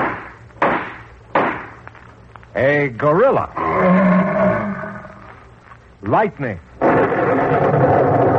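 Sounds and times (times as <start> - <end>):
judge's gavel strike: 0.0 - 1.8
speech: 2.6 - 4.6, 6.0 - 8.3.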